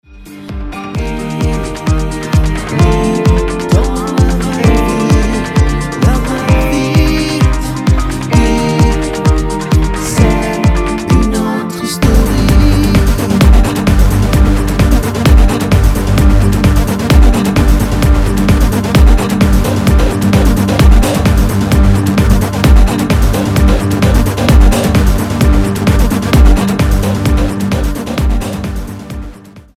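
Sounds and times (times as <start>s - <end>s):
instrumental music: 0.0s - 29.7s.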